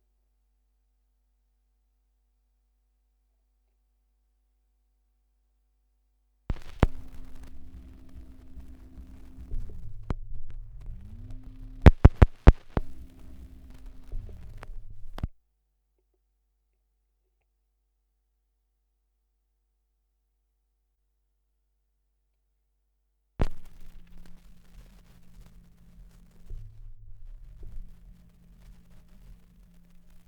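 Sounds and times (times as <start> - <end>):
78rpm record surface noise: 6.5 - 15.3, 23.4 - 30.2.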